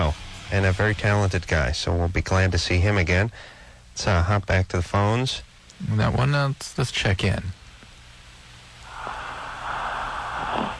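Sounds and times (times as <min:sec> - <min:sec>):
speech: 0:00.1 - 0:07.6
person snoring: 0:08.8 - 0:10.7.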